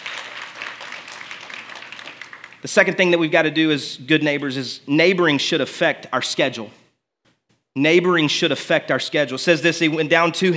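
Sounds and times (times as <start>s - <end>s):
crowd clapping: 0.0s - 3.0s
speech: 2.6s - 6.8s, 7.8s - 10.5s.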